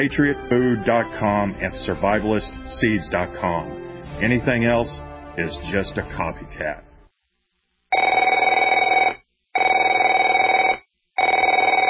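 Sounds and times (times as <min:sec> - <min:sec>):
speech: 0:00.0 - 0:06.9
telephone ringing: 0:07.9 - 0:11.8.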